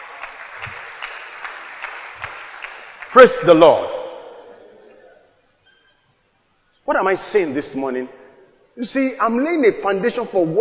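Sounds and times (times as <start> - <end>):
church congregation applauding themselves during a sermon: 0.0 - 4.6
speech: 3.1 - 4.0, 6.9 - 8.2, 8.8 - 10.5.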